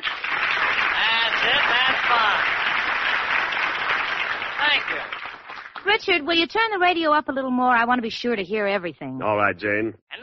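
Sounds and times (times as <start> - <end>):
crowd applause: 0.0 - 6.0
voices and cheers: 1.0 - 2.7
speech: 4.7 - 5.2, 5.9 - 10.0.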